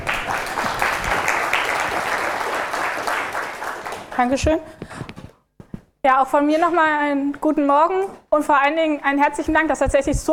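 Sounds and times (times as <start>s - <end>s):
crowd applauding: 0.0s - 4.3s
speech: 4.2s - 4.9s, 6.0s - 10.3s.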